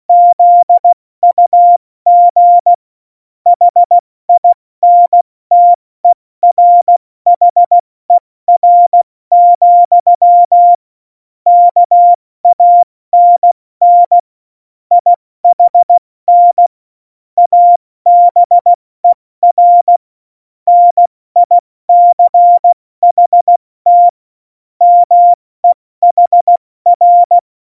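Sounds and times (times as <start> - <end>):
CW Morse code at tempo 70: 0.1 - 2.8, 3.5 - 5.8, 6.4 - 7.8, 8.5 - 10.8, 11.5 - 14.2, 14.9 - 16.7, 17.4 - 20.0, 20.7 - 24.2, 24.8 - 27.4.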